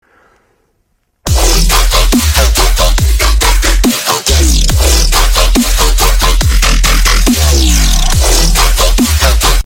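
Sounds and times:
dubstep music: 1.3s - 9.6s.

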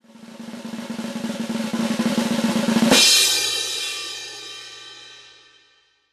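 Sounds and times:
winner drum roll: 0.0s - 5.0s.

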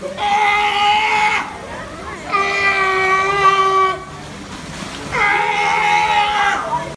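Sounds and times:
sea lion screaming: 0.1s - 1.6s, 2.3s - 4.1s, 5.1s - 6.8s.

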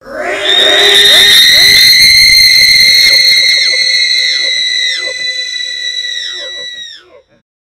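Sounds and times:
reeeeeee bomb sound effect: 0.0s - 7.1s.

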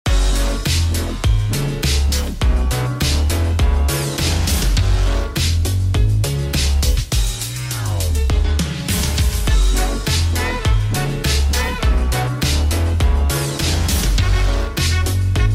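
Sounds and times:
electro swing music: 0.0s - 15.5s.

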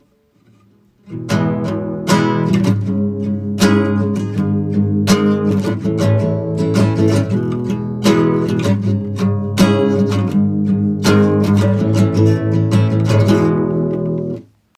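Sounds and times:
guitar cover: 0.0s - 14.7s.

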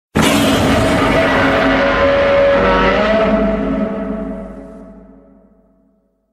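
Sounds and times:
Godzilla roar: 0.2s - 4.8s.

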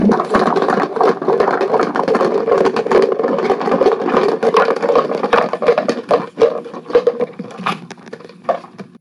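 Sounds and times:
buckets tumbling: 0.0s - 9.0s.

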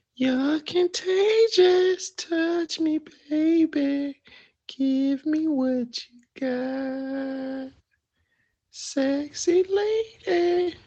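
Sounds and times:
person singing: 0.1s - 7.8s, 8.7s - 10.8s.

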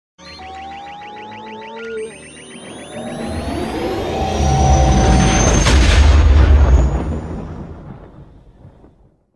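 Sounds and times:
Millennium Falcon hyperdrive effect: 0.2s - 7.2s.

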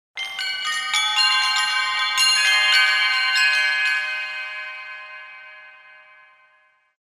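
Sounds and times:
chimes: 0.2s - 7.0s.

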